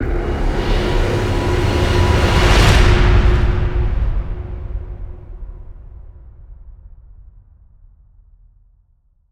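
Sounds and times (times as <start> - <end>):
musical stinger: 0.0 - 5.7.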